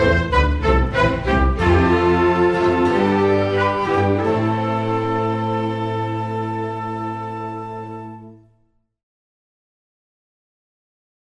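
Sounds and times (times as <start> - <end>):
orchestra: 0.0 - 8.7.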